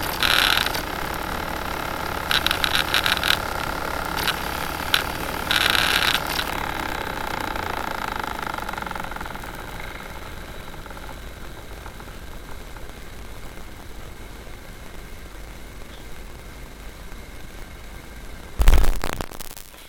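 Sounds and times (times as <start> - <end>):
metal machine noise: 0.0 - 12.4.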